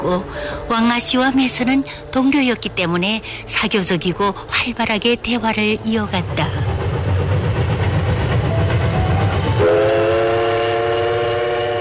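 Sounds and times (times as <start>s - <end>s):
speech: 0.0s - 6.8s
train running slowly on rails: 0.0s - 11.8s
train horn blast: 9.6s - 11.8s.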